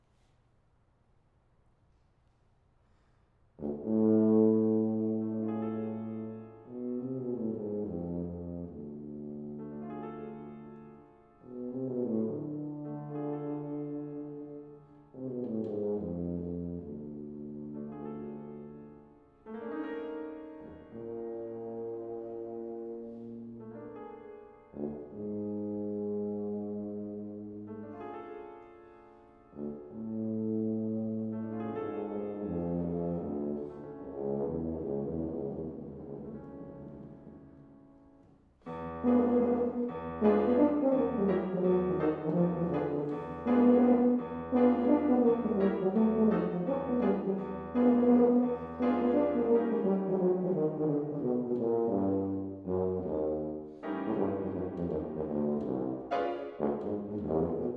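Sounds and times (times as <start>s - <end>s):
piano in a sonata: 2.9s - 57.7s
tuba in a sonata: 2.9s - 57.7s.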